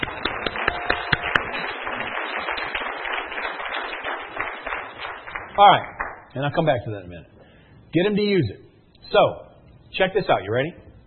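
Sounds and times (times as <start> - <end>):
audience round of applause: 0.0 - 6.2
speech: 5.6 - 7.3, 7.9 - 10.8.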